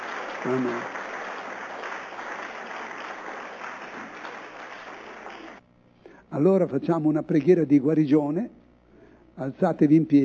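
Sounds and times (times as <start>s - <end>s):
audience applauding: 0.0s - 5.6s
speech: 0.4s - 1.0s, 6.3s - 8.6s, 9.4s - 10.2s.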